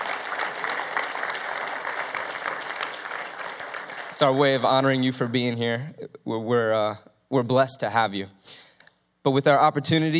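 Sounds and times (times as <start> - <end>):
audience applause: 0.0 - 5.0
speech: 4.2 - 8.6, 9.2 - 10.1.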